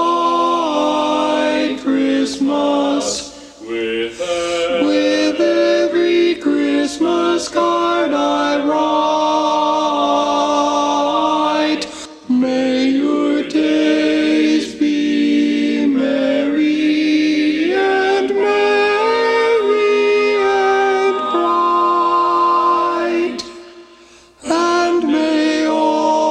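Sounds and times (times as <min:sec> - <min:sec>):
tenor singing a Christmas song: 0:00.0 - 0:26.2.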